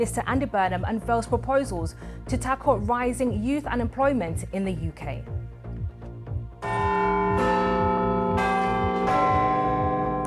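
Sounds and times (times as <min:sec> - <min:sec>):
speech: 0:00.0 - 0:05.4
soft low rhythmic pulse: 0:00.0 - 0:10.2
Big Ben clock bell chiming: 0:06.6 - 0:10.2.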